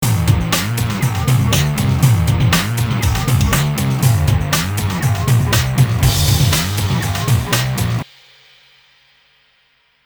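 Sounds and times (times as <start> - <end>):
depressing rock music: 0.0 - 8.0.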